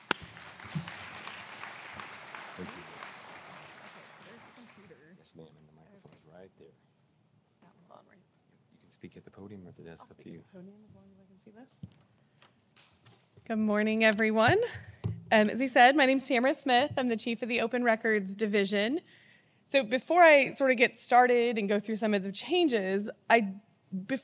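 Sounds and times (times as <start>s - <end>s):
warm round of applause: 0.0s - 5.1s
speech: 9.0s - 12.1s, 13.5s - 24.2s.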